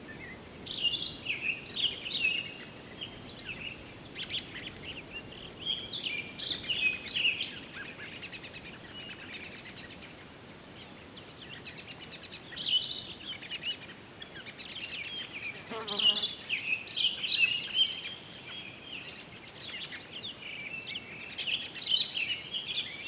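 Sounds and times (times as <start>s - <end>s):
Townsend's solitaire singing warble: 0.0s - 23.0s
hiss: 0.0s - 23.0s.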